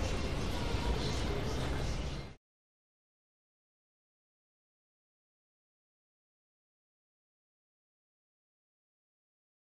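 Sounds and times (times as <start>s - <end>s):
urban ambience in Cairo Egypt: 0.0s - 2.4s.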